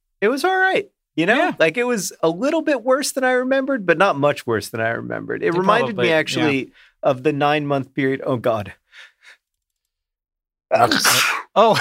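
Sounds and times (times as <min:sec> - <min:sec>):
speech: 0:00.2 - 0:09.4, 0:10.7 - 0:11.7
short voiced exclamation: 0:05.6 - 0:06.6
loud sneeze: 0:10.7 - 0:11.7.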